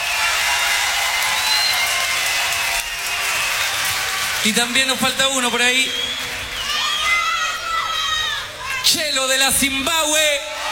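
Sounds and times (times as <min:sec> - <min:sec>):
audience applause: 0:00.0 - 0:08.1
speech: 0:04.4 - 0:06.1, 0:08.9 - 0:10.5.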